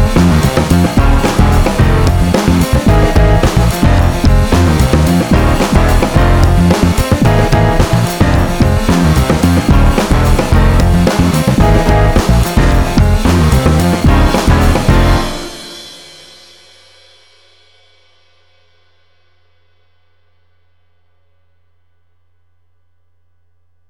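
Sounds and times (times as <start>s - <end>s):
bombstep music: 0.0s - 16.3s.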